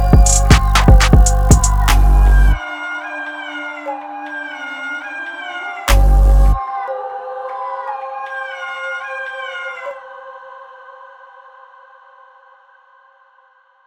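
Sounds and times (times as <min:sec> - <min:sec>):
loud drums: 0:00.0 - 0:02.5.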